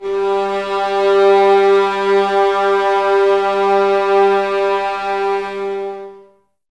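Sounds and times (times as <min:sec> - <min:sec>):
eleven muted violins: 0:00.0 - 0:06.3.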